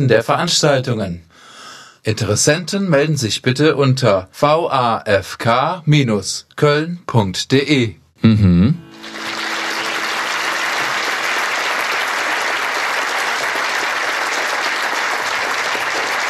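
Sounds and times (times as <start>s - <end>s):
speech: 0.0s - 1.4s, 2.0s - 8.8s
audience applause after a lecture: 8.9s - 16.2s.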